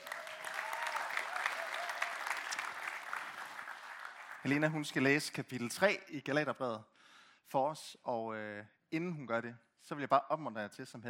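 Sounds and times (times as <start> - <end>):
church congregation applause welcoming a reader: 0.0 - 4.8
speech: 4.4 - 11.0.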